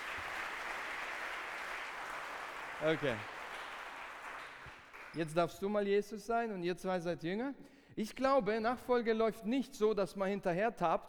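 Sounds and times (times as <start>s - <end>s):
faint applause from a group: 0.0s - 5.2s
speech: 2.8s - 3.3s, 5.2s - 11.0s.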